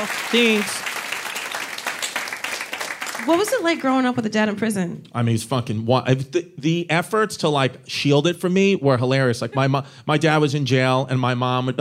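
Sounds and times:
speech: 0:00.0 - 0:00.9, 0:03.2 - 0:11.7
applause: 0:00.0 - 0:04.0.

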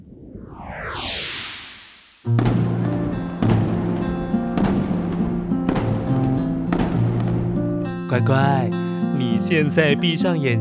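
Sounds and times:
rising firework whistle: 0:00.0 - 0:06.2
crackling rumble of fireworks: 0:00.0 - 0:08.0
fireworks bursting: 0:01.4 - 0:08.0
speech: 0:02.2 - 0:02.6, 0:08.1 - 0:10.5.

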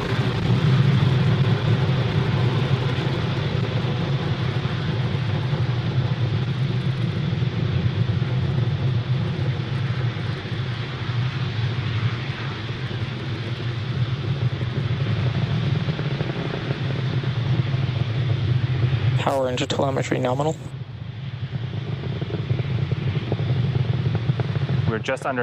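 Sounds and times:
SpaceX Falcon 9 rocket lifting off from Pad 40 at Cape Canaveral: 0:00.0 - 0:25.4
speech: 0:19.4 - 0:20.7, 0:25.0 - 0:25.4.

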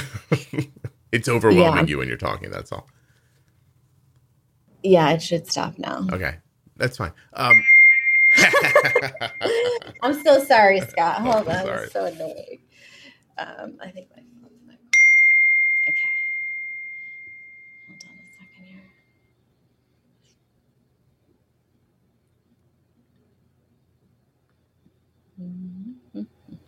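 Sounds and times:
laughter: 0:00.0 - 0:01.8, 0:08.4 - 0:12.5
speech: 0:00.3 - 0:03.0, 0:04.8 - 0:07.8, 0:08.4 - 0:14.3
bell ding: 0:07.4 - 0:11.2, 0:15.0 - 0:18.5.

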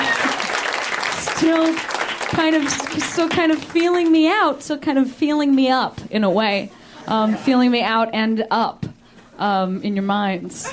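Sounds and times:
audience applause: 0:00.0 - 0:04.2
speech: 0:01.4 - 0:10.7.

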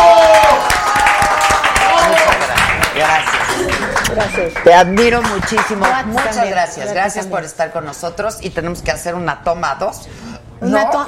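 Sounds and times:
audience applause: 0:00.0 - 0:06.4
speech: 0:04.4 - 0:11.0.

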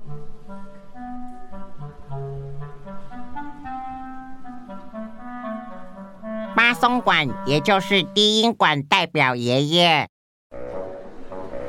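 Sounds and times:
clarinet playing a theme representing a cat: 0:00.0 - 0:08.6
speech: 0:06.8 - 0:10.1.

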